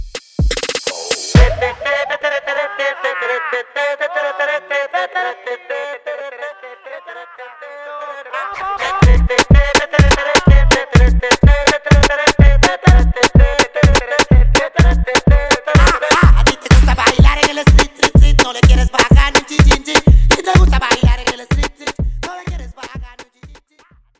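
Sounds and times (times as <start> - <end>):
song intro and verse: 0.6 - 2.8, 8.6 - 23.4.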